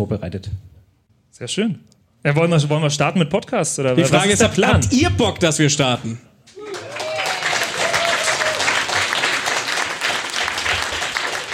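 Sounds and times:
speech: 0:00.0 - 0:00.7, 0:01.4 - 0:06.3
live audience applause: 0:06.5 - 0:11.5.

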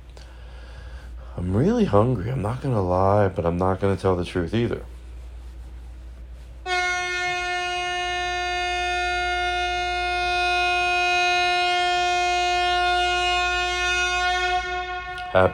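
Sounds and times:
speech: 0:01.4 - 0:04.9, 0:15.4 - 0:15.5
horn honk: 0:06.6 - 0:15.5.

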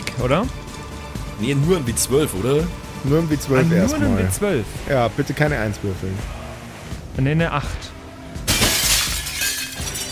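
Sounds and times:
speech: 0:00.2 - 0:00.6, 0:01.4 - 0:06.4, 0:07.2 - 0:07.9
hospital windows shattering: 0:08.4 - 0:10.1.

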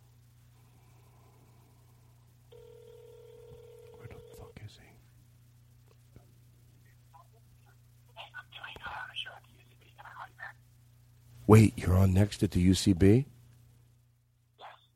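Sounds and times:
telephone ringback tone on a prank call: 0:02.5 - 0:04.4
speech: 0:11.5 - 0:13.3.

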